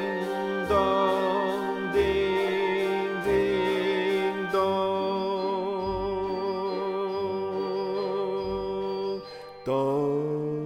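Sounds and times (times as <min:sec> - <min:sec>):
tenor Christmas bells ringing: 0:00.0 - 0:10.5.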